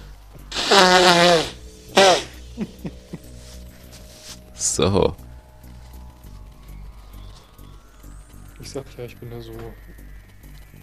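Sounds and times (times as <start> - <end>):
person blowing nose: 0.5 - 4.4
speech: 0.7 - 1.6, 4.8 - 5.2, 8.7 - 10.0.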